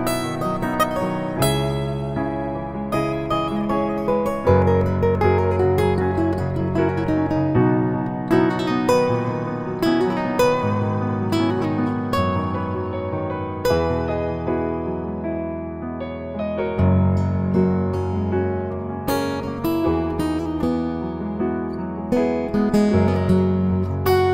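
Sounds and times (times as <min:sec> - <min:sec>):
guitar cover: 0:00.0 - 0:24.3
piano cover: 0:00.0 - 0:24.3.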